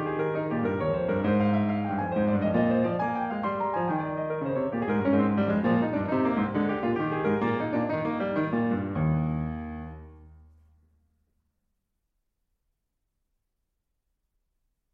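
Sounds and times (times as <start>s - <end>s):
baroque keyboard suite courante in E flat: 0.0s - 10.4s.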